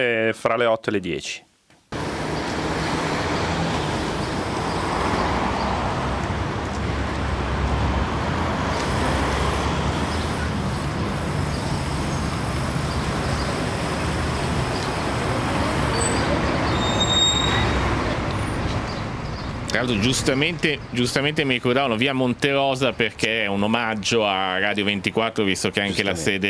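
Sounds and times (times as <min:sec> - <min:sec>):
speech: 0:00.0 - 0:01.5, 0:19.8 - 0:26.4
city street passing traffic rumble: 0:01.9 - 0:26.4.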